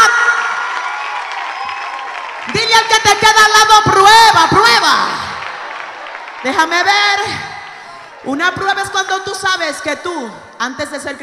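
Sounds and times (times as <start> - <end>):
audience clapping: 0.3 - 8.3
speech: 6.4 - 7.5, 8.2 - 11.2.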